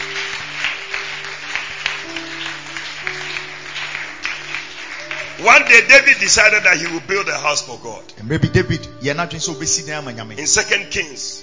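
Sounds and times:
audience clapping: 0.0s - 7.5s
speech: 5.4s - 11.4s.

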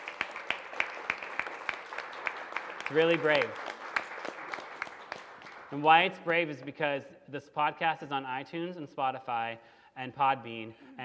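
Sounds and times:
small group clapping at a live event: 0.0s - 6.7s
speech: 2.9s - 3.6s, 5.7s - 11.0s.

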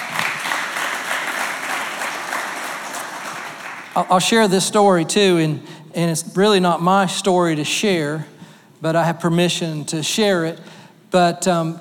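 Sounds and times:
audience clapping: 0.0s - 4.2s
speech: 4.0s - 11.8s.

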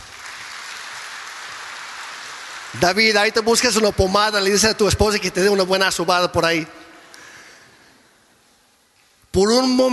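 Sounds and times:
audience applause: 0.0s - 2.9s
speech: 2.7s - 6.8s, 9.4s - 9.9s.

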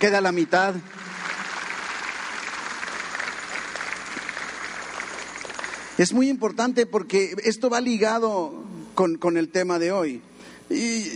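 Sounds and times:
speech: 0.0s - 1.0s, 6.0s - 11.1s
loud audience applause: 0.0s - 6.0s.

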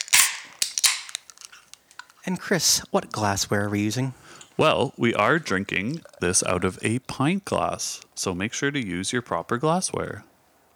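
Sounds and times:
beer can being opened: 0.0s - 2.3s, 4.4s - 6.8s
speech: 2.3s - 10.3s.

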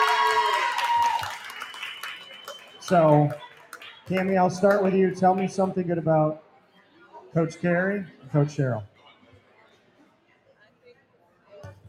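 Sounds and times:
audience clapping: 0.0s - 5.8s
speech: 2.9s - 3.4s, 4.1s - 6.4s, 7.3s - 8.9s.

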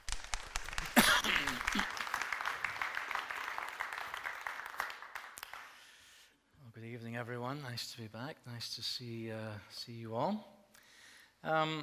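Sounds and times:
audience applause welcoming a speaker at an evening lecture: 0.0s - 5.8s
speech: 7.2s - 10.5s, 11.4s - 11.8s.

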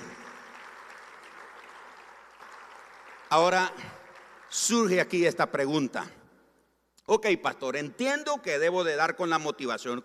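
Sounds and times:
audience applause: 0.0s - 4.9s
speech: 3.3s - 6.2s, 7.1s - 10.0s.

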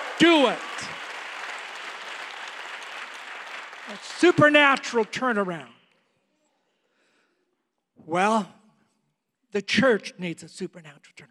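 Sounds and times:
audience shouting: 0.0s - 1.0s
audience clapping: 0.0s - 5.7s
speech: 0.2s - 0.9s, 3.9s - 5.8s, 8.0s - 8.6s, 9.5s - 11.2s.

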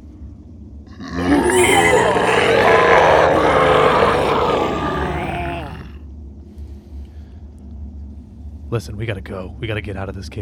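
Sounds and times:
multiple inhuman bestial screams from a passageway: 1.0s - 6.0s
speech: 8.8s - 10.4s.

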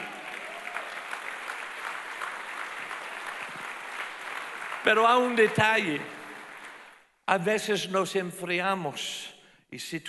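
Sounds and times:
audience applause: 0.0s - 7.0s
speech: 4.8s - 6.2s, 7.3s - 10.0s.

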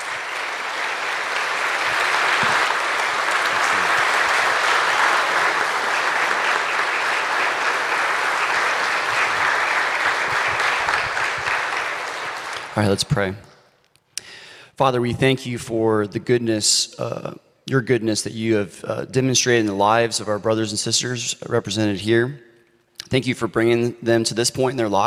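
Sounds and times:
audience applause for graduates: 0.0s - 13.0s
speech: 12.8s - 13.5s, 14.8s - 22.5s, 23.1s - 25.0s.

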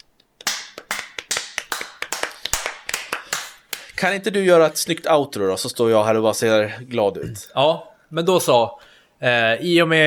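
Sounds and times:
small round of hand clapping: 0.4s - 4.0s
speech: 4.0s - 10.0s.

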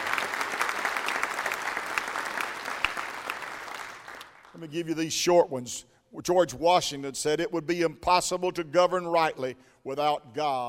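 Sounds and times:
crowd applauding: 0.0s - 4.6s
speech: 4.6s - 10.6s.

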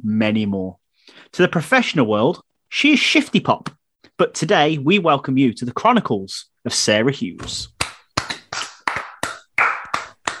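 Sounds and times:
speech: 0.0s - 7.7s
hand clapping: 7.4s - 10.3s.

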